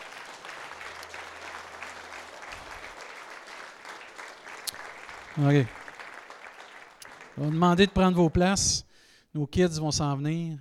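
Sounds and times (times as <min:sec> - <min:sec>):
audience applauding: 0:00.0 - 0:08.4
speech: 0:05.4 - 0:05.8, 0:07.4 - 0:10.6.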